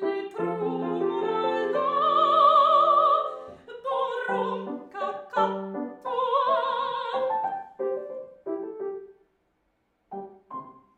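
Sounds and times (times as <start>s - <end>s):
Malay folk song singing: 0.0s - 7.6s.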